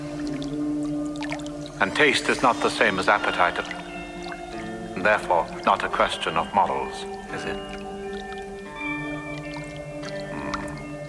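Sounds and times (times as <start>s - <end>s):
soft creepy music tones: 0.0s - 11.0s
speech: 1.8s - 3.8s, 5.0s - 7.9s
chime: 2.8s - 11.0s.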